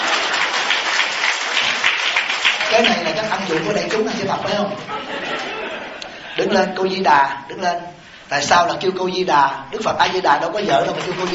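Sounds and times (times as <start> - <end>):
applause at a Buddhist temple gathering: 0.0 - 4.6, 10.6 - 11.3
speech: 2.8 - 11.3
laughter: 3.6 - 6.8.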